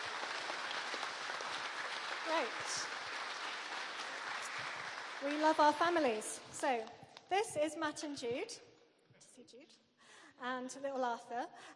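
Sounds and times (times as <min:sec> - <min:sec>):
audience applause: 0:00.0 - 0:06.5
speech: 0:02.3 - 0:03.0, 0:05.2 - 0:08.7, 0:09.4 - 0:11.7.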